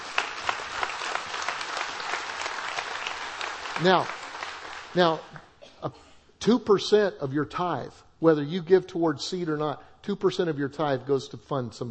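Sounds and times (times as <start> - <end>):
audience applause: 0.0 - 5.3
speech: 3.8 - 4.2, 4.9 - 11.8.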